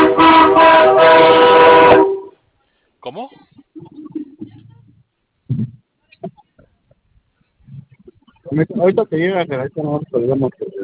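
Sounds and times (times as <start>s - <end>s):
train horn blast: 0.0s - 2.4s
speech: 8.6s - 10.8s.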